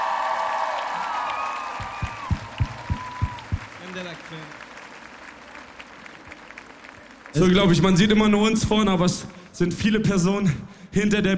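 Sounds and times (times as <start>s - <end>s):
audience applause: 0.0s - 8.2s
speech: 4.0s - 4.6s, 7.3s - 11.3s.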